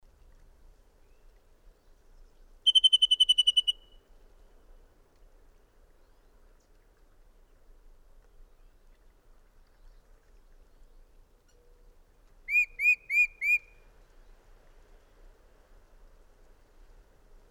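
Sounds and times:
bird trilling: 2.7s - 4.0s, 12.5s - 13.7s.

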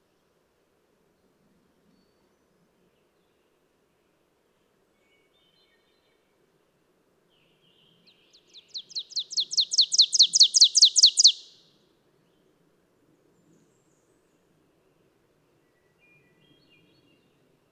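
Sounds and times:
bird singing high downslurred chips: 8.8s - 11.6s.

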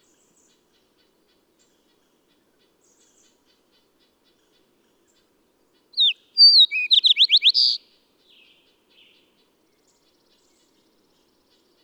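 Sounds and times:
bird singing: 6.0s - 7.8s.

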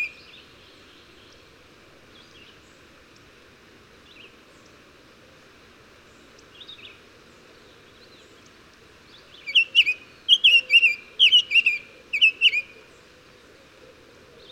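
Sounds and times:
bird song: 0.0s - 1.5s, 2.1s - 2.9s, 4.0s - 4.8s, 6.0s - 13.1s.

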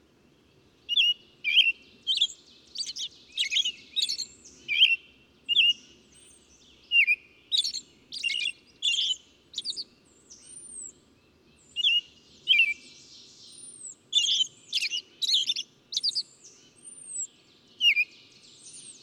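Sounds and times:
bird twittering chirps: 0.9s - 19.0s.

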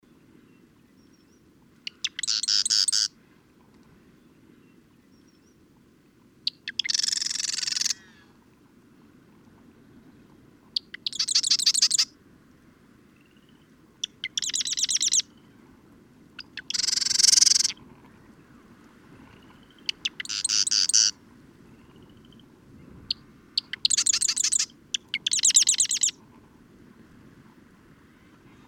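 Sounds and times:
bird song with high sharp chirped notes and dense rapid trill: 1.0s - 3.1s, 6.5s - 8.2s, 10.8s - 12.1s, 13.3s - 15.4s, 16.4s - 17.8s, 19.6s - 21.2s, 23.1s - 26.2s.

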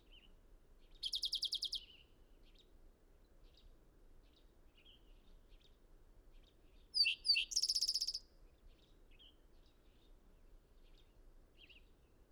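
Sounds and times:
bird singing: 7.0s - 8.2s.

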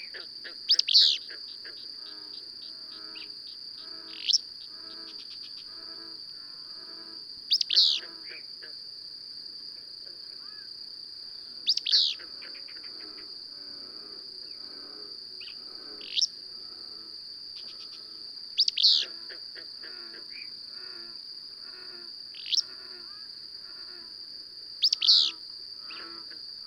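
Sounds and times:
high-pitched insect-like drone: 0.0s - 26.6s
bird chirping: 0.7s - 1.3s, 7.5s - 8.1s, 11.7s - 12.2s, 18.6s - 19.1s, 24.8s - 25.4s.

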